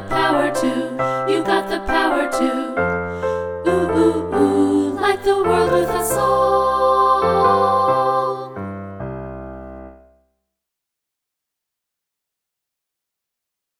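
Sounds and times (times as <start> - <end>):
vocals: 0.0 - 8.9.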